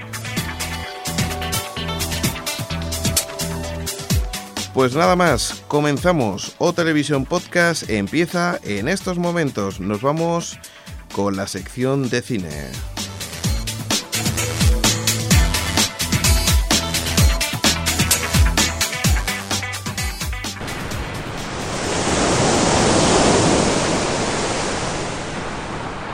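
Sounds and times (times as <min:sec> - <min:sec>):
upbeat music with a steady beat: 0:00.0 - 0:21.4
speech: 0:04.8 - 0:12.9
ocean waves washing onto a beach: 0:20.6 - 0:26.1.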